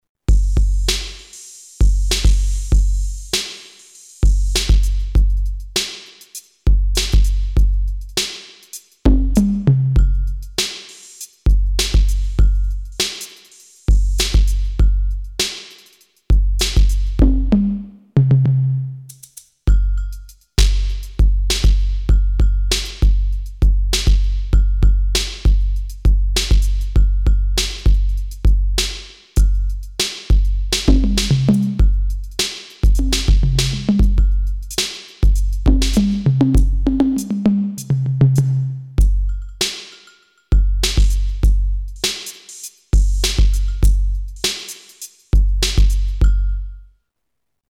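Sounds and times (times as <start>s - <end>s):
ALESIS Debut Kit electronic drum kit: 0.3s - 18.4s, 19.1s - 46.7s.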